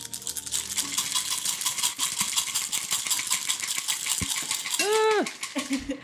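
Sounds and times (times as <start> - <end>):
dice being shaken and rolled: 0.0 - 6.0.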